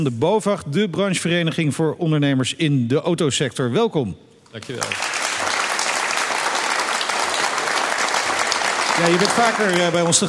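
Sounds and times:
speech: 0.0 - 5.2, 9.0 - 10.2
studio audience applause: 4.6 - 10.2.

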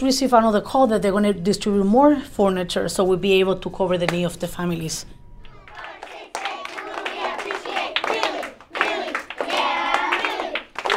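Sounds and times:
speech: 0.0 - 5.2
third-grade class clapping to start the school day: 5.4 - 10.9.

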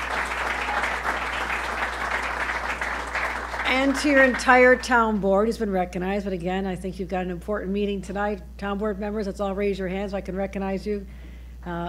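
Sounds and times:
audience applause: 0.0 - 4.8
speech: 3.7 - 11.8.

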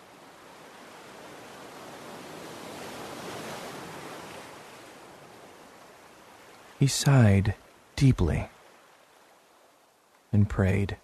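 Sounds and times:
waves washing onto a shore: 0.0 - 11.0
speech: 6.8 - 8.5, 10.3 - 11.0.

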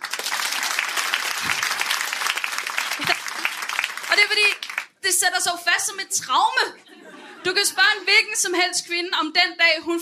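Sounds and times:
audience clapping: 0.0 - 5.0
laughter: 2.9 - 3.6, 6.8 - 8.1
speech: 4.3 - 10.0.

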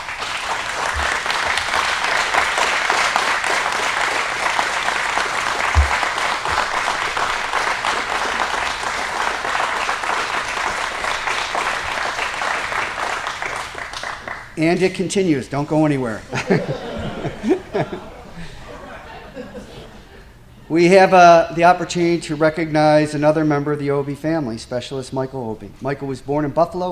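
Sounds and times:
audience applause: 0.0 - 14.6
speech: 14.6 - 18.1, 20.7 - 26.8
laughter: 16.2 - 20.4.

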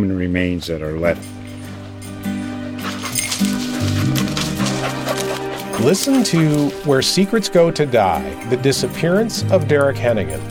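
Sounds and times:
speech: 0.0 - 1.4, 5.8 - 10.5
search dog barking and whimpering: 2.7 - 6.9.

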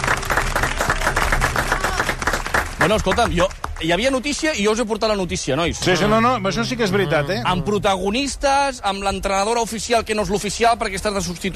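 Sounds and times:
applause: 0.0 - 4.6
speech: 2.8 - 11.5.

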